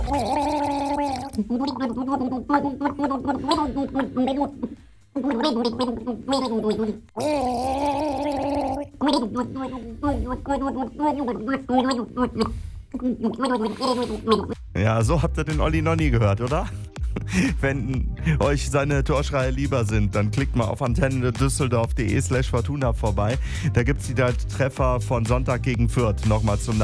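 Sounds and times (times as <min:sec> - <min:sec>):
person gargling water to a song: 0:00.0 - 0:14.7
speech: 0:01.4 - 0:08.0, 0:09.0 - 0:26.8.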